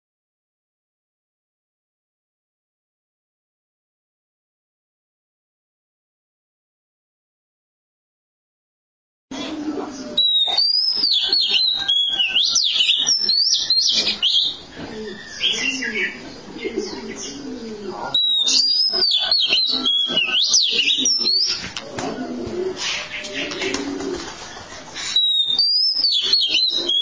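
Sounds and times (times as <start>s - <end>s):
Oriental magpie-robin singing: 9.3s - 22.2s, 22.9s - 27.0s.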